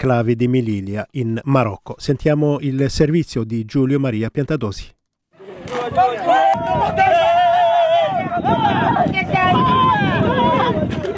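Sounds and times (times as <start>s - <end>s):
speech: 0.0s - 5.0s, 5.6s - 11.1s
sub-Saharan migrants shouting for joy: 5.4s - 11.1s.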